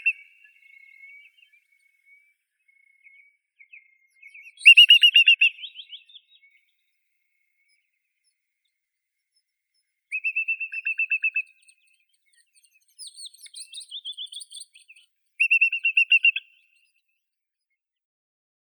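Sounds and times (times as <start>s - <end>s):
whimbrel Numenius phaeopus: 4.3s - 6.3s, 10.1s - 11.8s, 12.6s - 16.5s.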